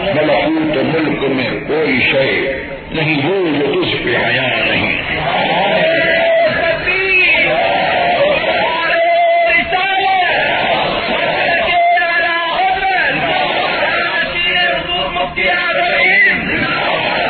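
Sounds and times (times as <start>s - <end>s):
speech: 0.1s - 6.2s
crowd chanting slogans: 4.9s - 9.0s, 10.1s - 17.2s.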